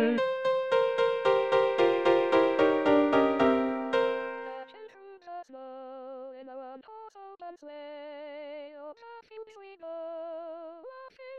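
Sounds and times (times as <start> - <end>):
Christmas tune on bass: 0.2 - 4.8.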